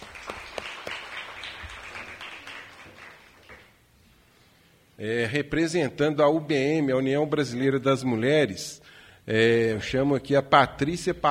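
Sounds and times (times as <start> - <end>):
audience applause: 0.0 - 3.8
speech: 5.0 - 11.3.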